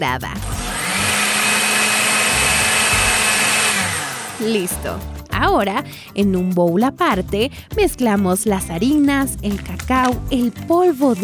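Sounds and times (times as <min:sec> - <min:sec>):
speech: 0:00.0 - 0:00.6, 0:04.4 - 0:11.2
food processor blending beet eggs yogurt coconut oil honey and vanilla: 0:00.4 - 0:05.0.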